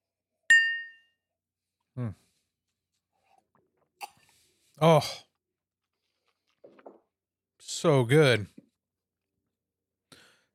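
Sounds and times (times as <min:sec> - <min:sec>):
glasses clinking in a toast: 0:00.5 - 0:01.1
speech: 0:02.0 - 0:02.3, 0:04.8 - 0:05.3, 0:07.8 - 0:08.6.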